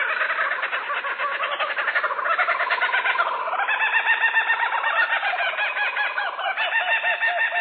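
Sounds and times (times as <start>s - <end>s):
laughing kookaburra call: 0.0s - 7.5s.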